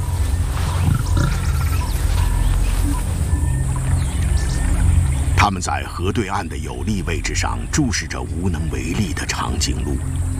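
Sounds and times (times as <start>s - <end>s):
lions growling and roaring in a swamp: 0.0s - 5.4s
speech: 5.5s - 10.3s.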